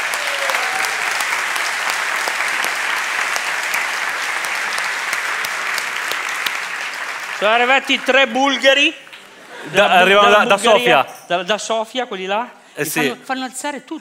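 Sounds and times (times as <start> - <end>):
crowd applauding: 0.0 - 10.5
speech: 7.4 - 9.0, 9.6 - 13.9.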